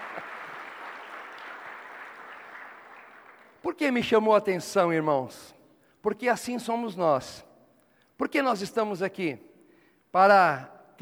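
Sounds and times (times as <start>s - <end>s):
audience applause: 0.0s - 3.6s
speech: 3.6s - 7.5s, 8.2s - 9.5s, 10.1s - 11.0s.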